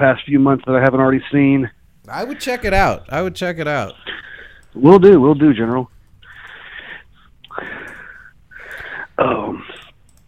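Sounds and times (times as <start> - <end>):
speech: 0.0 - 4.1, 4.7 - 5.9, 9.2 - 9.8
heavy breathing: 6.2 - 9.2.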